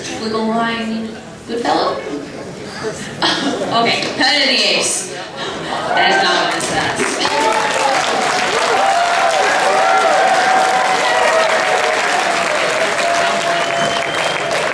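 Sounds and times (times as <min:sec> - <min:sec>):
speech: 0:00.2 - 0:08.9
audience applause: 0:06.4 - 0:14.7.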